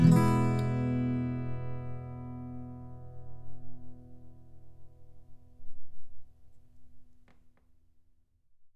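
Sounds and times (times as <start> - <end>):
alternate guitar part: 0.0 - 5.8.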